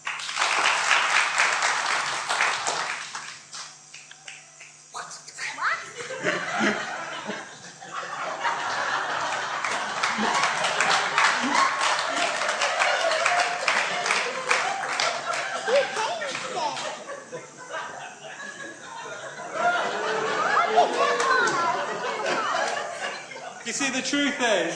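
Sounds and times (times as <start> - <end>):
audience applause: 0.0 - 3.4, 8.2 - 17.1, 19.5 - 23.5
laughter: 5.8 - 24.7.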